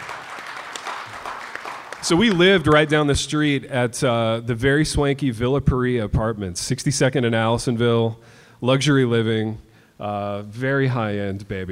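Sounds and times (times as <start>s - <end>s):
live audience applause: 0.0s - 3.0s
speech: 2.0s - 11.7s.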